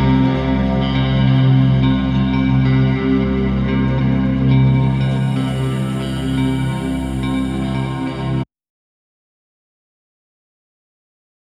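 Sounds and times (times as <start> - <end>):
spooky dark western guitar with delay: 0.0 - 8.4.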